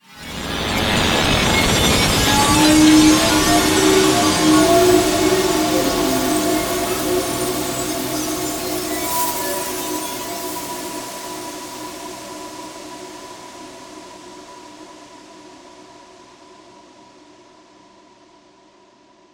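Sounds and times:
horror hit: 0.2s - 8.8s.

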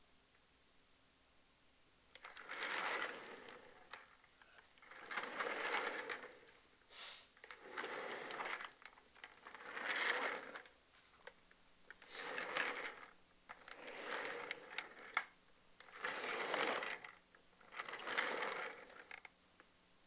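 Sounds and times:
chair rolling: 2.2s - 4.2s, 4.8s - 6.5s, 7.4s - 10.7s, 12.1s - 19.3s.

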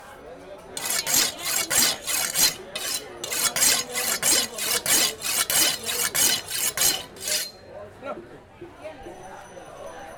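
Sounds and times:
metal knife being sharpened on a grindstone: 0.8s - 7.6s.

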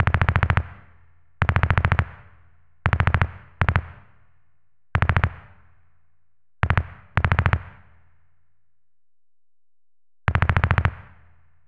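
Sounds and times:
distant machine gun fire: 0.0s - 0.8s, 1.4s - 2.2s, 2.9s - 4.1s, 5.0s - 5.6s, 6.6s - 7.8s, 10.3s - 11.3s.

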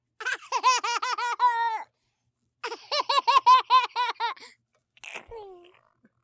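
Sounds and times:
child laughing: 0.2s - 1.9s, 2.6s - 4.5s.

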